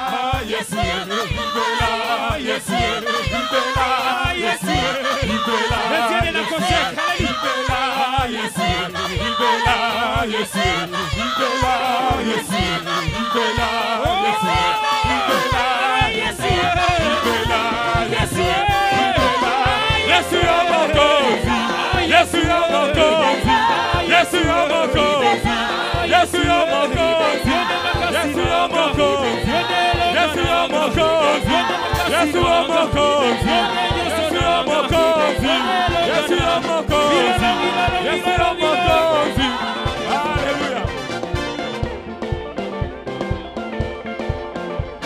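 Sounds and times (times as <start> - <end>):
church congregation shouting for joy in acclaim of the Lord: 0.0 - 41.6
driving rhythmic beat: 0.0 - 45.0
speech: 0.4 - 1.8.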